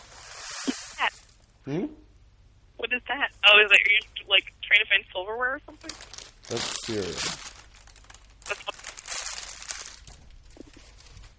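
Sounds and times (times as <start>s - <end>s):
plastic cereal bag crinkling: 0.0s - 1.4s, 5.8s - 11.3s
speech: 1.0s - 2.0s, 2.9s - 7.4s.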